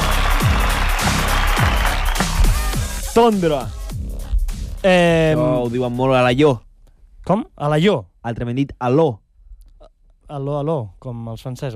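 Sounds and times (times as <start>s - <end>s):
canned applause sound effect: 0.0s - 3.2s
speech: 3.2s - 3.8s, 4.8s - 9.2s, 10.3s - 11.7s.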